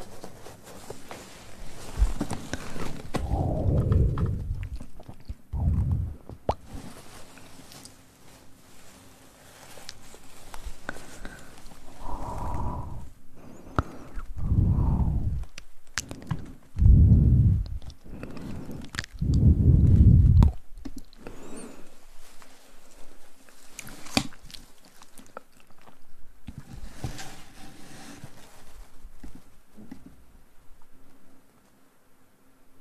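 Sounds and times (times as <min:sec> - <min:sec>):
soft crackles and rustles: 0:00.0 - 0:32.2
faint steady hum: 0:00.0 - 0:32.7
heavy low thumps: 0:03.2 - 0:04.8, 0:05.6 - 0:06.3, 0:16.8 - 0:17.9, 0:19.2 - 0:20.6
wet mouth clicks, smacks and chewing-like noises: 0:03.2 - 0:06.6, 0:13.8 - 0:18.0, 0:18.6 - 0:21.2.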